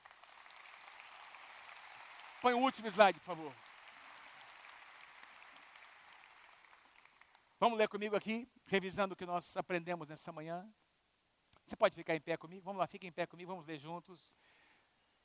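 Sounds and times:
audience applause: 0:00.0 - 0:07.6
speech: 0:02.4 - 0:03.6, 0:07.6 - 0:10.8, 0:11.7 - 0:14.6.

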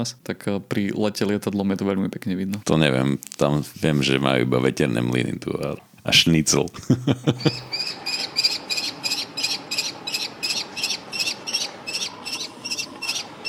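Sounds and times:
speech: 0:00.0 - 0:08.0
laughter: 0:06.6 - 0:07.7
common kestrel calling: 0:07.4 - 0:13.4.

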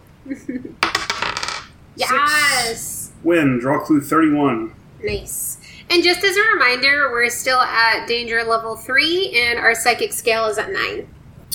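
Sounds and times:
speech: 0:00.2 - 0:01.1, 0:02.0 - 0:11.2
dice rolled on a table during a House of Danger game: 0:00.8 - 0:01.7.

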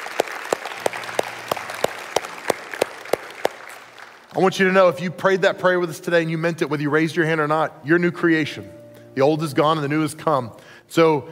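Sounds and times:
audience applause: 0:00.0 - 0:04.3
speech: 0:04.4 - 0:11.3.

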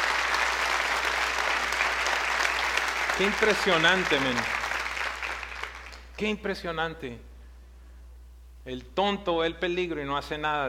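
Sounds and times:
audience applause: 0:00.0 - 0:06.1
speech: 0:03.2 - 0:04.6, 0:06.2 - 0:07.3, 0:08.7 - 0:10.6.

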